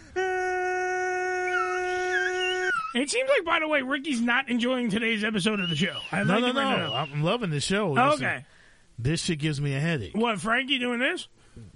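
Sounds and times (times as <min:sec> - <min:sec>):
voice imitating a tornado siren: 0:00.1 - 0:03.0, 0:05.4 - 0:07.2
speech: 0:02.9 - 0:11.7.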